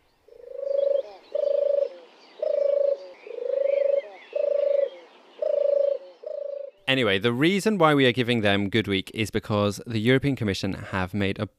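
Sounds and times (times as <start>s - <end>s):
faint birds chirping: 0.0s - 7.2s
turtle dove purring: 0.3s - 6.8s
speech: 6.9s - 11.5s.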